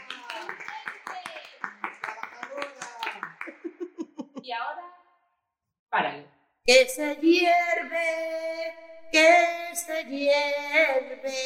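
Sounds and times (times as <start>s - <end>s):
applause: 0.0s - 3.9s
laughter: 1.6s - 4.5s
speech: 4.5s - 4.9s, 5.9s - 11.4s.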